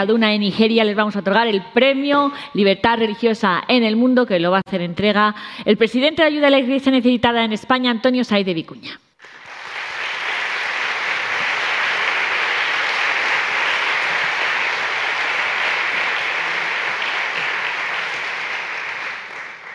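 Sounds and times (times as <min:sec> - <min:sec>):
speech: 0:00.0 - 0:09.0
audience applause: 0:09.2 - 0:19.7.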